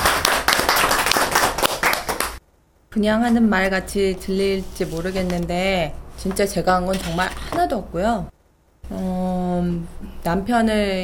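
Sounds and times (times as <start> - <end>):
audience applause: 0.0 - 2.4
speech: 2.9 - 11.0.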